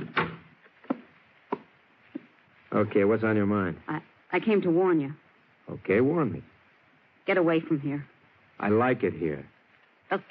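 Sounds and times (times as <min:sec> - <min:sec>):
door swinging shut with a hollow thump: 0:00.0 - 0:00.5
speech: 0:02.7 - 0:06.5, 0:07.2 - 0:09.5.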